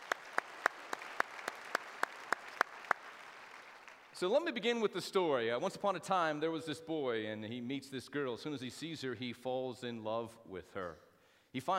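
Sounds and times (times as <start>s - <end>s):
church audience clapping in unison: 0.0s - 4.2s
speech: 4.2s - 11.7s.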